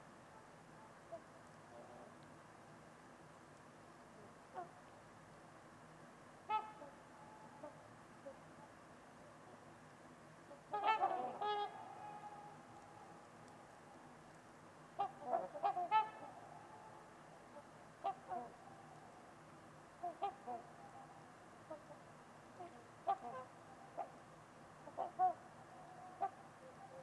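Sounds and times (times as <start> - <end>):
soft hiss: 0.0 - 27.0
trumpeter swan honking: 4.5 - 4.8, 6.4 - 8.4, 10.5 - 13.9, 15.0 - 19.2, 20.0 - 24.2, 24.8 - 27.0.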